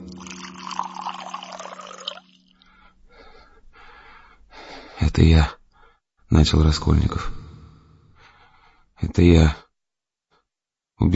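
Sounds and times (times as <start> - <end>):
water pouring into a glass: 0.0 - 2.7
speech: 5.0 - 5.6, 6.3 - 7.4, 9.0 - 9.6, 11.0 - 11.1.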